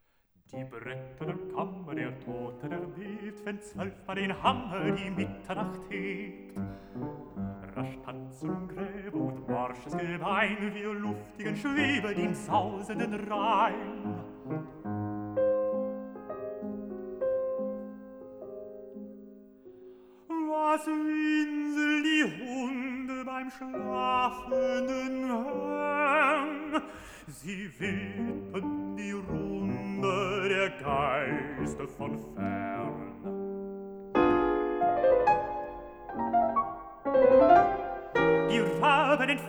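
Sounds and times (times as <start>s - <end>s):
piano: 0.0s - 39.4s
person singing: 0.5s - 14.7s, 20.3s - 33.3s, 37.6s - 39.4s.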